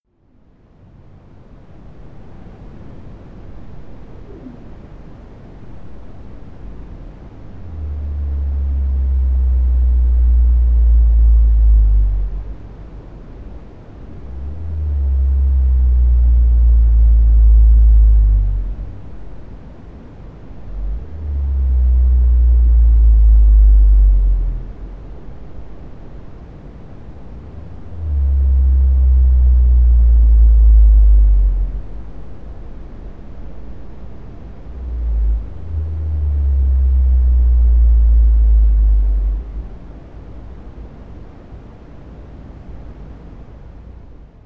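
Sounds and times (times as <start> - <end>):
blue whale D calls: 6.5 - 25.1, 27.4 - 33.0, 34.6 - 40.1.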